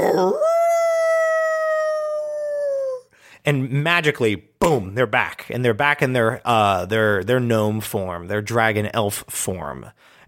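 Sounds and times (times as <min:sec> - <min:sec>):
person imitating a wolf howl: 0:00.0 - 0:03.1
speech: 0:03.4 - 0:10.2.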